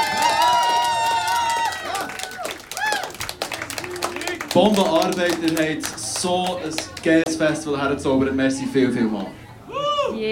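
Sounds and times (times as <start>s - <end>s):
festival crowd applauding: 0.0s - 7.3s
speech: 4.5s - 9.4s, 10.1s - 10.3s.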